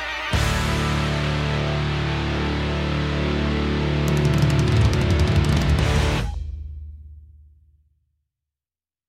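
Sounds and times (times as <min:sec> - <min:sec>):
virtuoso hard rock solos: 0:00.3 - 0:06.4
stuttering beat: 0:03.8 - 0:07.0.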